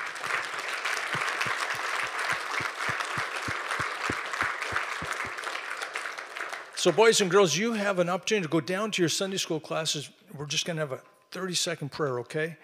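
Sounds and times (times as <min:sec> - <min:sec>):
audience applauding: 0:00.0 - 0:07.0
low thumping beat: 0:01.2 - 0:05.4
speech: 0:06.8 - 0:12.6.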